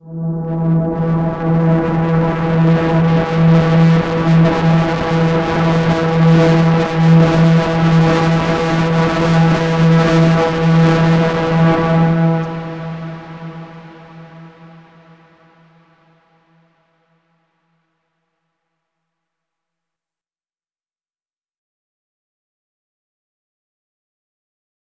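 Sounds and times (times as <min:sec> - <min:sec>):
overlay drone: 0:00.0 - 0:15.8.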